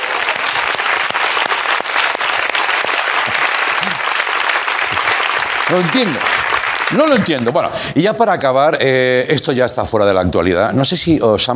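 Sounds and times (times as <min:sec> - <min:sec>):
audience applause: 0:00.0 - 0:07.9
speech: 0:05.7 - 0:06.3, 0:06.9 - 0:11.5.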